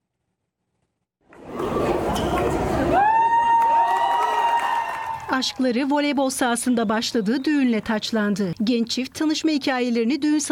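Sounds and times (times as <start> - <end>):
wedding guests cheering and applauding: 1.5 - 5.8
speech: 5.4 - 10.5.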